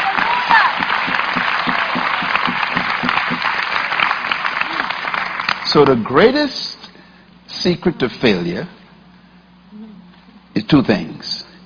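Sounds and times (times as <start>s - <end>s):
audience clapping: 0.0s - 6.2s
speech: 5.7s - 6.8s, 7.6s - 8.8s, 10.6s - 11.1s.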